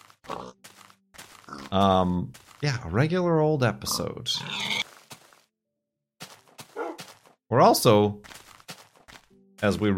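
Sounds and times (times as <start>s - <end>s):
video game pig oinking: 0.2s - 0.6s, 1.5s - 2.0s, 3.8s - 4.8s
speech: 1.7s - 4.8s, 7.5s - 8.3s, 9.6s - 9.9s.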